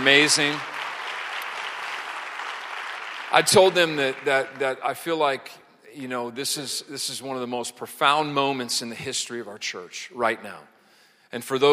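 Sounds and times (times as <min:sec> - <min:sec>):
speech: 0:00.0 - 0:00.7, 0:03.3 - 0:10.7, 0:11.3 - 0:11.7
audience applause: 0:00.0 - 0:05.0.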